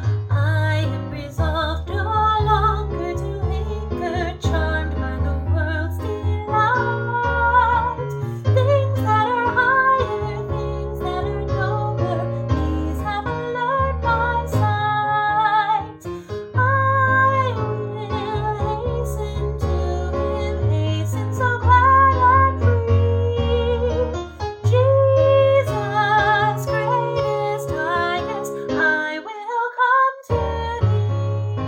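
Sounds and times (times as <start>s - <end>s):
soprano singing: 0.2s - 31.6s.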